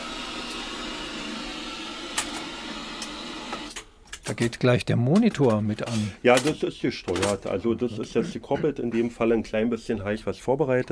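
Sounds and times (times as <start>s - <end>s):
VHS video recorder powering up with a mechanical whir and hiss: 0.0s - 10.9s
speech: 4.3s - 10.9s.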